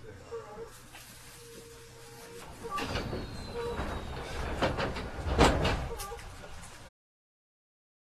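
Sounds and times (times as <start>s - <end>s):
205 series train on the Musashino line: 0.7s - 6.9s.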